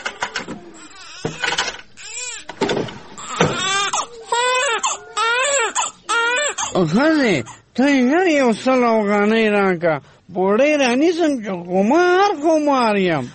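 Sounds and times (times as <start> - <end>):
baby crying in a room: 0.7 - 2.6, 3.2 - 7.6
speech: 6.8 - 13.3.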